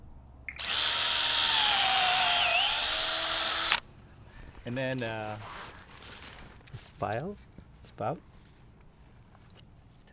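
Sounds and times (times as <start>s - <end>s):
power drill boring an angled tap hole into a tree trunk: 0.6s - 3.8s
speech: 4.7s - 5.6s, 6.8s - 8.3s.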